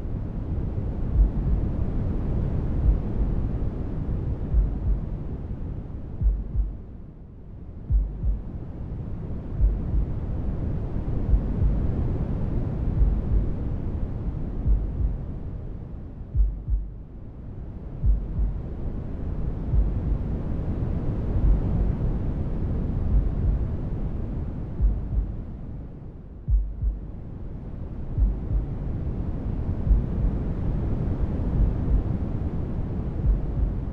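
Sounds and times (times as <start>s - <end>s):
noise: 0.0s - 33.9s
heartbeat: 1.1s - 1.7s, 2.8s - 3.2s, 4.3s - 5.1s, 6.2s - 6.9s, 7.9s - 8.6s, 9.6s - 10.1s, 11.2s - 11.8s, 13.0s - 13.5s, 14.6s - 15.2s, 16.3s - 17.0s, 18.0s - 18.6s, 19.7s - 20.2s, 21.4s - 21.8s, 23.1s - 23.7s, 24.8s - 25.3s, 26.5s - 27.1s, 28.1s - 28.8s, 29.8s - 30.3s, 31.5s - 32.1s, 33.2s - 33.9s.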